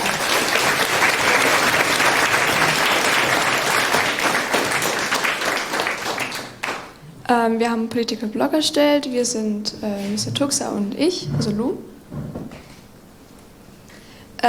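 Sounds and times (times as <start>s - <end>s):
audience applause: 0.0s - 7.0s
speech: 7.4s - 11.9s.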